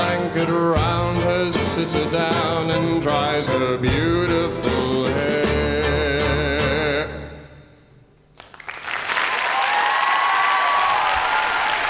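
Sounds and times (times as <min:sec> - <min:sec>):
song: 0:00.0 - 0:08.1
speech: 0:00.4 - 0:00.9, 0:01.8 - 0:05.9
audience applause: 0:08.4 - 0:11.8.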